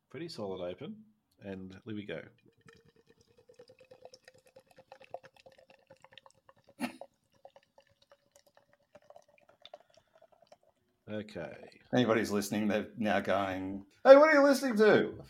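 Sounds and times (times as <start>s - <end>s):
speech: 0.1s - 2.8s, 11.1s - 15.2s
beer being poured: 1.5s - 13.6s.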